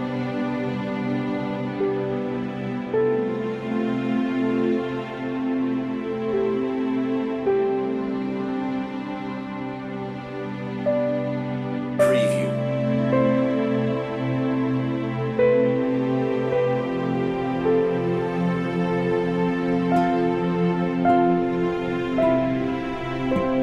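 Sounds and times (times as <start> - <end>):
relaxation music: 0.0 - 23.6.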